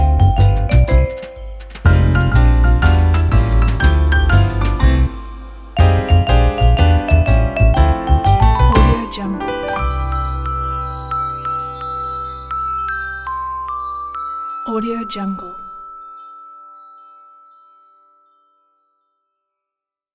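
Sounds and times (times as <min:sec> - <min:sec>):
christmas jazz cover: 0:00.0 - 0:14.7.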